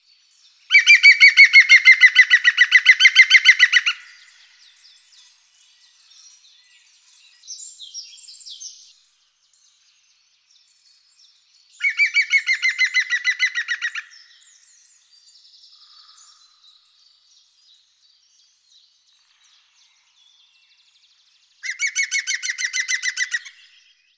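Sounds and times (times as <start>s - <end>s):
green woodpecker: 0.7s - 4.2s, 11.8s - 14.2s, 21.6s - 23.7s.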